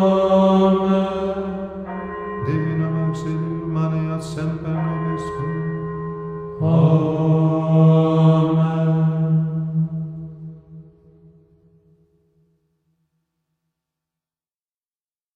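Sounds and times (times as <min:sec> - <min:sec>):
antiphon chant: 0:00.0 - 0:11.4.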